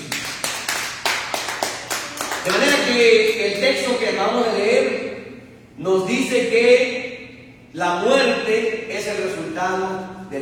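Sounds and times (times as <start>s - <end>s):
audience applause: 0.0s - 2.7s
speech: 2.4s - 5.1s, 5.8s - 7.0s, 7.7s - 10.4s.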